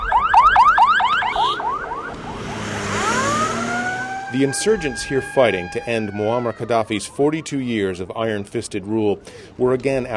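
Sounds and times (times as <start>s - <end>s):
ambulance siren speeding down road: 0.0s - 8.1s
steady rush of road noise: 0.0s - 10.1s
speech: 4.3s - 10.1s.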